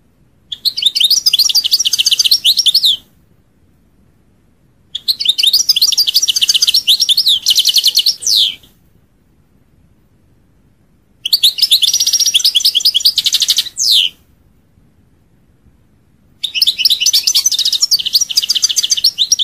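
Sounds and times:
European goldfinch song: 0.5 - 3.0, 5.0 - 8.7, 11.2 - 14.2, 16.4 - 19.4.

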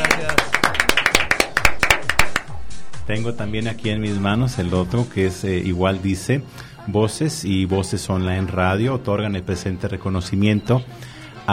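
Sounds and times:
small audience clapping for a workshop award: 0.0 - 2.5
speech: 3.1 - 11.5.

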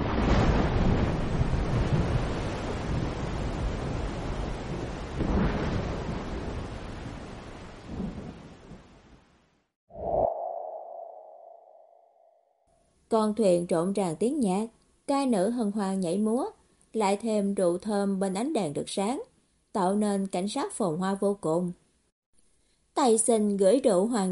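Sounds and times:
heavy downpour of rain: 0.0 - 9.4
speech: 13.1 - 21.8, 23.0 - 24.3.

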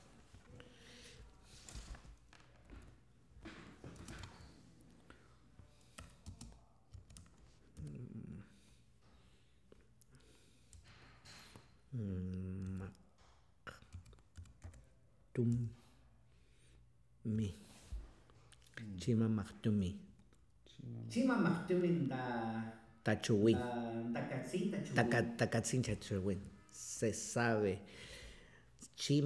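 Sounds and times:
typing on a computer keyboard: 1.0 - 8.1, 12.4 - 13.1, 13.7 - 15.6
speech: 15.4 - 15.8, 19.1 - 20.1, 21.2 - 28.2, 29.0 - 29.2
laughter: 21.0 - 26.6.

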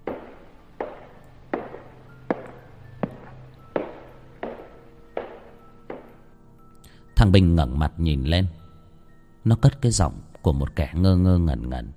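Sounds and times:
heavy footsteps approaching along a prison cell block corridor: 0.0 - 7.2
speech: 7.2 - 8.6, 9.4 - 11.9.

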